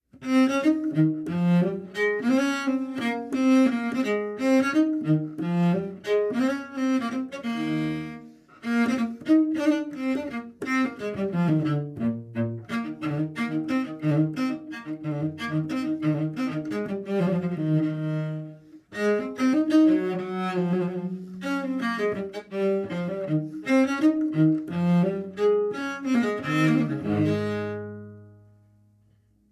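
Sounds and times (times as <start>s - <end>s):
contrabass: 0.2s - 28.5s.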